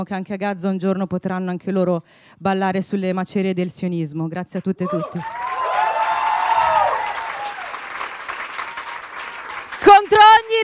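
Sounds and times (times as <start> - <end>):
speech: 0.0 - 5.4
audience applause: 4.9 - 10.6.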